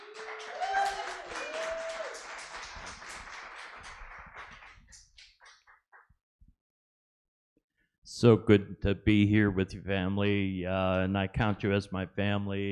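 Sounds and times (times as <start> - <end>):
applause from a church congregation at Element Church welcoming a pastor: 0.0 - 5.8
speech: 8.2 - 12.7.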